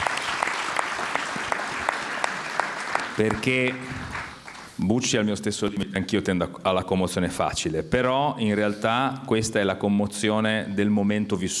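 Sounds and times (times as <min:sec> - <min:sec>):
audience applause: 0:00.0 - 0:05.4
speech: 0:03.2 - 0:04.2, 0:04.8 - 0:11.5.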